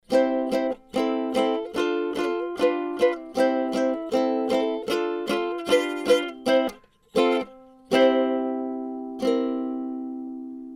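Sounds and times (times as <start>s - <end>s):
ukulele through Universal Audio Volt 2: 0.0s - 10.7s.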